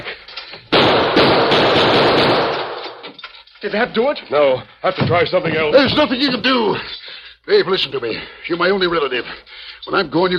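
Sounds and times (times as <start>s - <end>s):
gunshots fired at a metal chain staple: 0.7s - 3.0s
speech: 3.6s - 10.3s.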